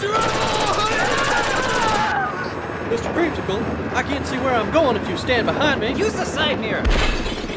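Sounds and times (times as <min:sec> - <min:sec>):
automatic gunfire: 0:00.2 - 0:02.1
speech: 0:03.2 - 0:07.2.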